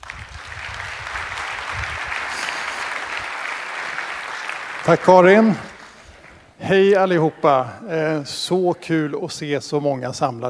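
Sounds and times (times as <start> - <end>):
audience applause: 0.0 - 7.3
speech: 4.8 - 5.7, 6.6 - 10.4.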